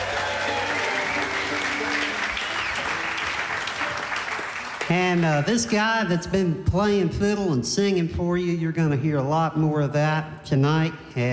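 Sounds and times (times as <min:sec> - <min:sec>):
audience applause for the sound engineer at a live concert: 0:00.0 - 0:05.8
faint crowd noise: 0:00.0 - 0:07.2
speech: 0:04.9 - 0:11.3.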